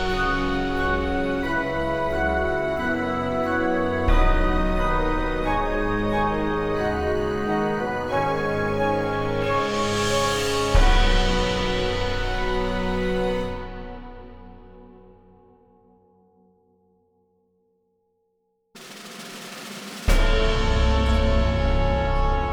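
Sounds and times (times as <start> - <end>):
cinematic stabs: 0.0 - 15.3, 20.0 - 22.5.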